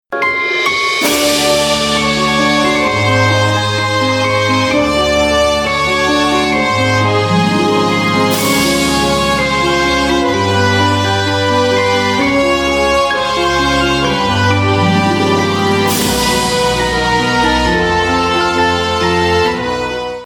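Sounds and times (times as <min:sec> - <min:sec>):
wintery waltz: 0:00.2 - 0:20.2.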